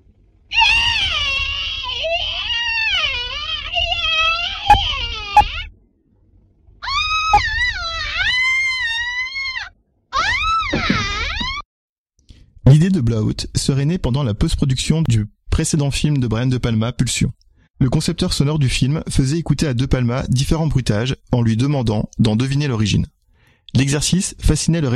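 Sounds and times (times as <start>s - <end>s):
woman screaming in a shower scene: 0.5s - 5.7s, 6.8s - 11.6s
speech: 13.2s - 24.9s.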